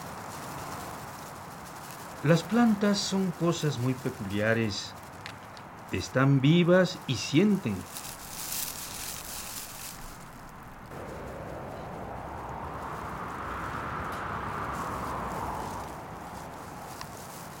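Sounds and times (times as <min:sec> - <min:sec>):
leaves rustling in the wind: 0:00.0 - 0:17.5
speech: 0:02.2 - 0:05.0, 0:05.9 - 0:08.1.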